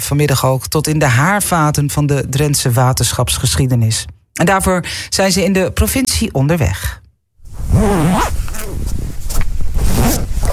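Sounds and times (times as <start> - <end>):
speech: 0.0 - 7.0, 7.6 - 9.0
jacket zipper pulled open: 7.5 - 10.5.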